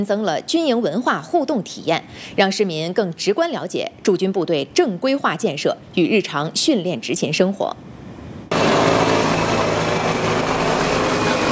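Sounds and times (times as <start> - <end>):
speech: 0.0 - 7.9
helicopter rotor roar: 8.5 - 11.4.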